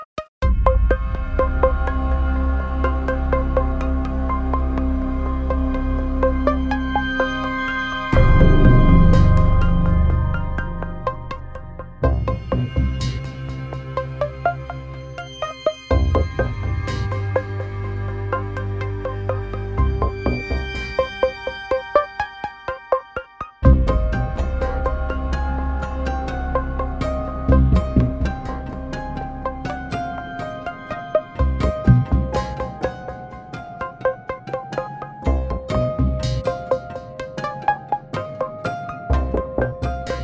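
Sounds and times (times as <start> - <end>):
film score cue: 0.5 - 40.2.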